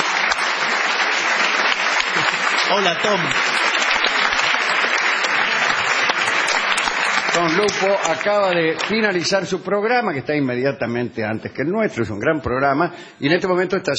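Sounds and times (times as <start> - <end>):
audience applause: 0.0 - 9.5
speech: 2.7 - 3.7, 7.4 - 13.9.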